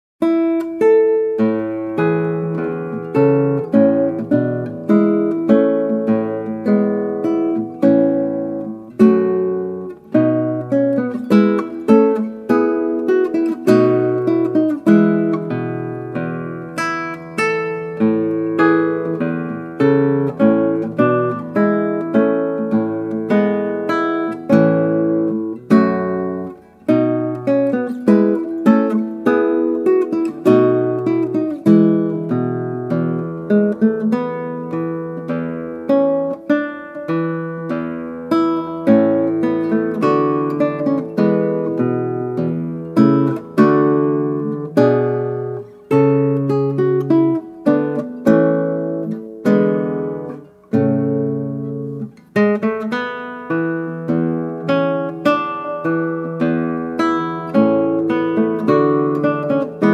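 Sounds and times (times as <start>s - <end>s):
classical guitar: 0.2s - 59.9s.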